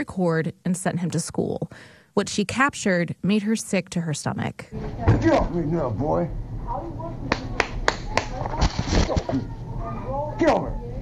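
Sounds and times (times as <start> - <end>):
speech: 0.0 - 7.4, 9.0 - 9.6, 10.4 - 10.8
people talking loudly: 4.8 - 11.0
child clapping hands: 7.3 - 8.4.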